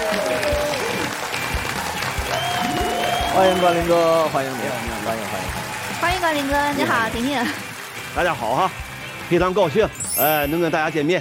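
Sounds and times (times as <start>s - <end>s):
scattered cheers: 0.0s - 6.8s
audience applause welcoming a guest: 0.0s - 9.8s
music: 0.0s - 11.1s
speech: 3.4s - 11.1s.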